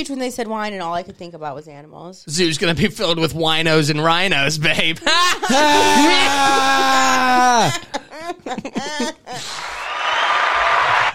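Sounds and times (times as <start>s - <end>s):
speech: 0.0s - 9.8s
laughter: 5.0s - 11.1s
applause: 9.4s - 11.1s
long wavering vocal whine: 9.4s - 11.1s.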